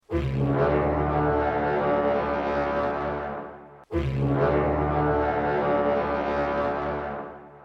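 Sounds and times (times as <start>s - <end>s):
war horn: 0.0s - 7.6s.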